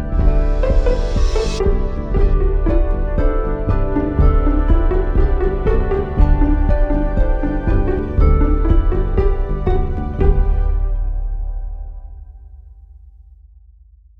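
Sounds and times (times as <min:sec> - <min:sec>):
bandura playing in G: 0:00.0 - 0:11.5
percussion: 0:00.0 - 0:12.5.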